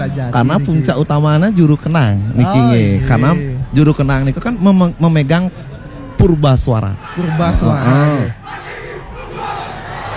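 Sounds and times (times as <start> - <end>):
speech: 0.0 - 8.6
crowd chanting cheer: 7.0 - 10.1.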